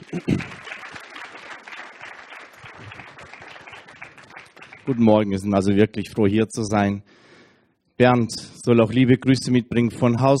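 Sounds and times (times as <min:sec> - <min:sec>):
audience applause: 0:00.0 - 0:05.3
speech: 0:04.9 - 0:07.2, 0:08.0 - 0:10.3.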